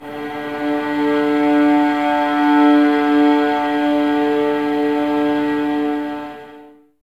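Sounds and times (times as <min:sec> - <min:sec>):
violas without vibrato: 0:00.0 - 0:06.8.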